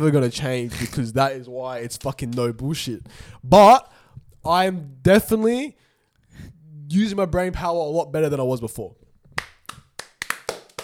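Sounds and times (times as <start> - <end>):
speech: 0.0 - 5.8, 6.4 - 9.0
clapping: 9.4 - 10.8.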